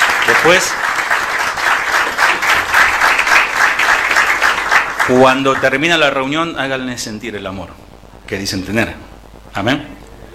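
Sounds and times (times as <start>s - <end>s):
church congregation clapping at a Spanish-language service: 0.0s - 6.2s
speech: 0.4s - 1.0s, 5.1s - 9.0s, 9.6s - 10.0s.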